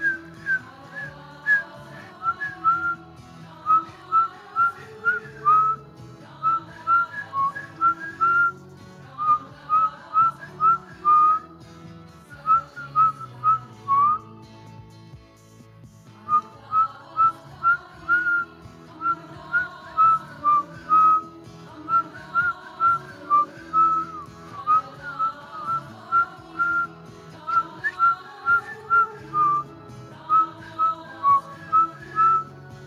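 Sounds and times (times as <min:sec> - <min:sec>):
person whistling during meditation: 0:00.0 - 0:03.0, 0:03.6 - 0:05.8, 0:06.4 - 0:11.5, 0:12.2 - 0:14.4, 0:16.3 - 0:29.7, 0:30.3 - 0:32.6.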